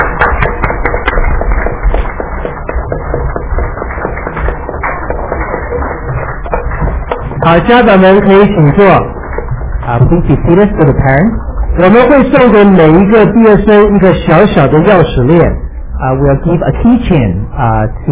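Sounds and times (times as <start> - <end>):
large crowd applauding graduates: 0.0 - 11.0
speech: 7.5 - 9.2, 9.8 - 18.0.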